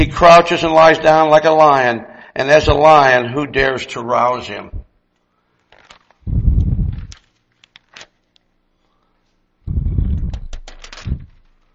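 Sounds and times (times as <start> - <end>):
speech: 0.0 - 4.8
thin book pages being separated and turned: 5.6 - 8.5, 10.3 - 11.7.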